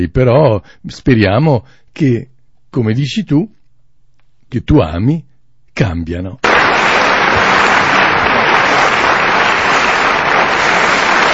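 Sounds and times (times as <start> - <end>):
speech: 0.0 - 3.6, 4.5 - 6.5
applause: 6.4 - 11.3.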